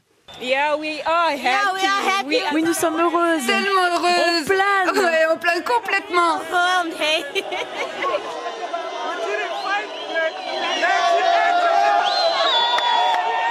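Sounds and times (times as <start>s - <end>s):
speech: 0.4s - 8.8s
laughter: 1.8s - 9.8s
jubilant crowd in Zimbabwe cheering Robert Mugabe's resignation: 7.4s - 13.4s.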